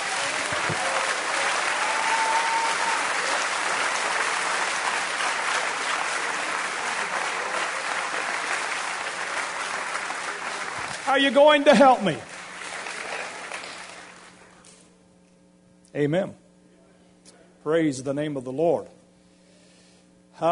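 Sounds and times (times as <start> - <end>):
audience applause: 0.0 - 14.6
speech: 11.1 - 12.3, 16.0 - 16.4, 17.6 - 19.0.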